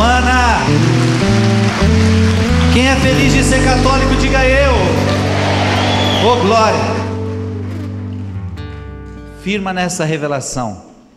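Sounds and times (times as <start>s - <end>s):
audience applauding: 0.0s - 8.7s
sustained low keyboard chords: 0.0s - 10.3s
speech: 3.0s - 5.1s, 6.2s - 6.9s, 9.5s - 10.9s.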